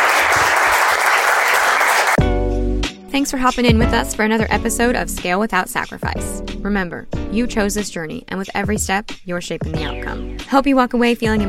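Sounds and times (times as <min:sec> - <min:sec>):
audience applause at a live business Q and A event: 0:00.0 - 0:02.2
speech: 0:03.2 - 0:11.4.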